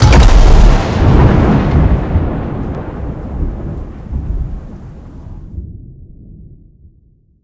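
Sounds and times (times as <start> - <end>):
scatter hit: 0.0 - 2.0.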